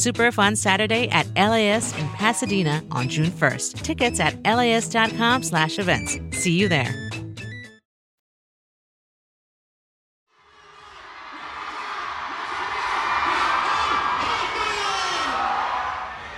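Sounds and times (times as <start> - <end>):
speech: 0.0 - 7.1
crowd of fans cheering and whooping at convention: 10.4 - 16.3
scattered shouts: 10.4 - 16.3.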